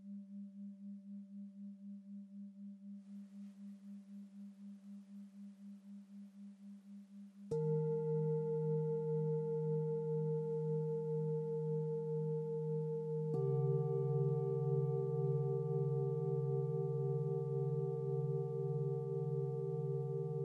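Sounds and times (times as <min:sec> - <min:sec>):
background singing bowls: 0:07.5 - 0:20.4.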